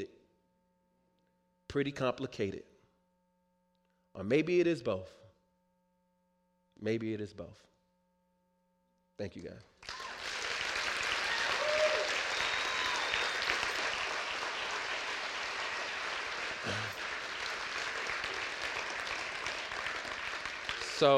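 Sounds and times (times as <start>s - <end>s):
speech: 1.7s - 2.7s, 4.2s - 5.2s, 6.8s - 7.7s, 9.2s - 10.0s, 16.6s - 17.0s, 21.0s - 21.1s
audience applause: 9.8s - 21.1s.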